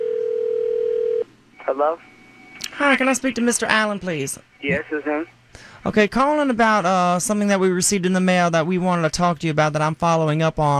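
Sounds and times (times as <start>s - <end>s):
telephone dial tone at the start of a prank phone call: 0.0s - 2.8s
speech: 1.7s - 2.2s, 2.8s - 10.7s.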